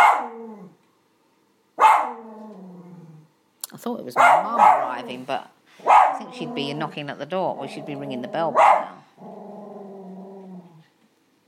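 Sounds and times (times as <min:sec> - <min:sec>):
dog barking at the window: 0:00.0 - 0:00.4, 0:01.8 - 0:02.2, 0:04.2 - 0:05.1, 0:05.8 - 0:06.4, 0:08.5 - 0:09.0
speech: 0:03.8 - 0:09.3.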